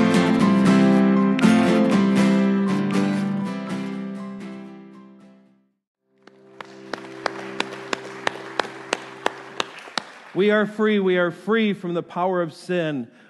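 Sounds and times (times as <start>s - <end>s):
rhythmic clapping pattern: 0.2s - 3.5s, 6.2s - 11.0s
speech: 10.4s - 13.2s.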